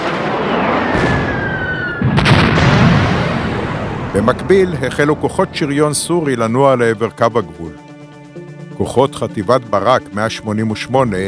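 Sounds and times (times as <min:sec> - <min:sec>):
heavy Syrian artillery barrage on the Golan: 0:00.0 - 0:05.6
aircraft bombing on the Golan: 0:00.0 - 0:07.3
speech: 0:04.2 - 0:07.8, 0:08.8 - 0:11.2.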